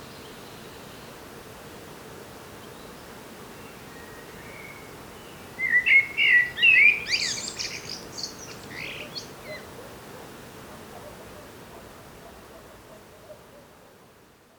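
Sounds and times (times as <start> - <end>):
faint background hiss: 0.0 - 14.5
common blackbird singing: 5.6 - 9.6.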